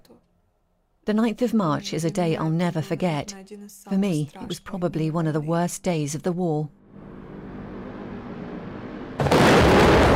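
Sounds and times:
speech: 1.1s - 7.1s
explosion near a block of flats in wartime Mariupol: 9.2s - 10.1s.

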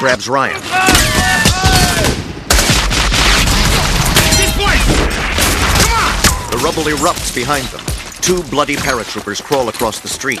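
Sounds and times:
speech: 0.0s - 1.4s, 6.6s - 10.3s
heavy gunfire from a German 20 mm wheeled gun in a war film: 2.5s - 9.3s.

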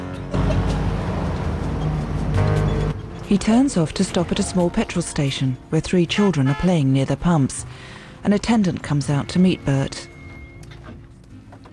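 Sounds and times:
car engine droning on a desert road: 0.0s - 11.7s
speech: 3.3s - 10.1s.

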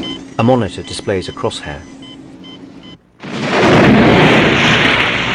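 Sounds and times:
speech: 0.4s - 1.9s
helicopter missiles exploding in the water near a makeshift raft: 3.2s - 5.3s.

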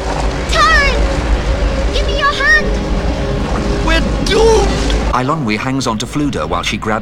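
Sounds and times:
whirlpool's churning water roar: 0.0s - 6.4s
speech: 5.2s - 7.0s.

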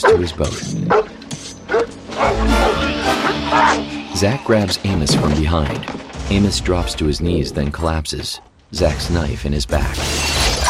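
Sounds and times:
dog barking: 0.0s - 0.3s, 0.9s - 3.8s
speech: 0.1s - 1.2s, 4.2s - 10.4s
dog yipping: 0.9s - 1.1s, 1.7s - 3.8s.

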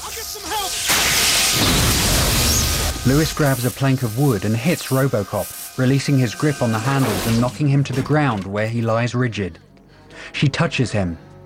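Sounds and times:
explosions as high-voltage electricity surges at a main power supply: 0.9s - 3.0s
speech: 3.0s - 11.3s.

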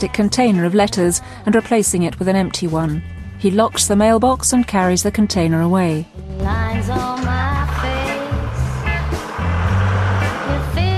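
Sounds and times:
speech: 0.0s - 7.5s
mail van engine pulling away through gear changes: 6.2s - 10.9s.

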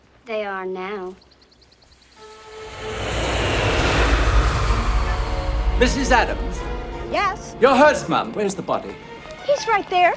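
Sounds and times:
speech: 0.3s - 1.4s, 2.8s - 3.1s, 5.8s - 10.1s
airplane engine roaring: 2.2s - 7.6s.

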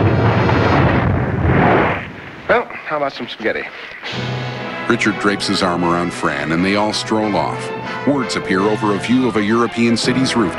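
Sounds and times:
roar of fire from a car bursting into flames: 0.0s - 2.5s
speech: 2.9s - 10.5s.

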